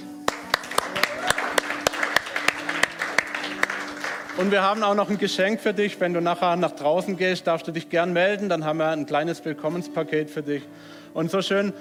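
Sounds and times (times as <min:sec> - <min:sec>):
audience applause: 0:00.2 - 0:05.0
speech: 0:04.4 - 0:11.8.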